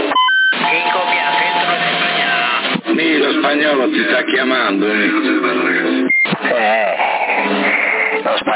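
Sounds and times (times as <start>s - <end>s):
CB radio roger beep on 27 MHz in Sassari: 0.1s - 2.7s, 6.0s - 6.5s, 7.4s - 8.5s
narrow band-limited radio speech: 0.5s - 8.5s
speech: 3.7s - 7.1s.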